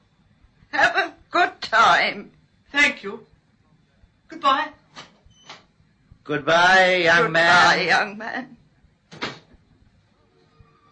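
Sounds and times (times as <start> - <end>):
speech: 2.0 - 3.3, 4.4 - 4.8, 6.3 - 8.6
door closing behind someone leaving: 9.1 - 9.6.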